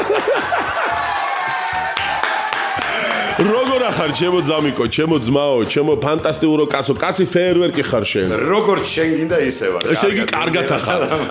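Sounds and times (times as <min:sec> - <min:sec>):
laughter: 0:00.0 - 0:01.8, 0:02.6 - 0:04.8, 0:09.9 - 0:11.2
audience applauding: 0:00.0 - 0:04.9
voices shouting and whooping: 0:00.1 - 0:04.8
speech: 0:03.4 - 0:11.2.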